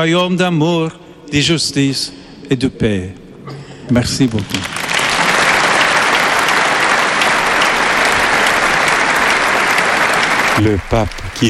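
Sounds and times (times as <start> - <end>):
speech: 0.0 - 3.2, 3.9 - 4.8, 10.6 - 11.4
Christian crowd of over 35,000 people applauding the Pope: 3.9 - 11.4.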